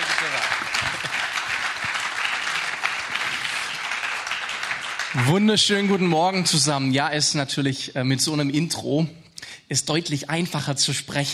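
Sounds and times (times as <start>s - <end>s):
audience applause: 0.0s - 6.4s
speech: 5.2s - 11.3s.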